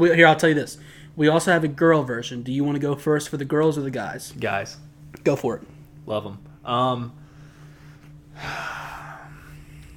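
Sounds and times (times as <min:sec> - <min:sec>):
speech: 0:00.0 - 0:07.2, 0:08.4 - 0:08.9
faint steady hum: 0:00.0 - 0:09.9
deep breath: 0:00.8 - 0:01.2, 0:07.2 - 0:09.9.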